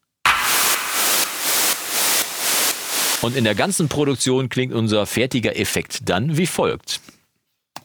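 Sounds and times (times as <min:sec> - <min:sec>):
clap sample: 0:00.3 - 0:03.6
white noise hiss: 0:00.3 - 0:04.1
speech: 0:03.2 - 0:07.1.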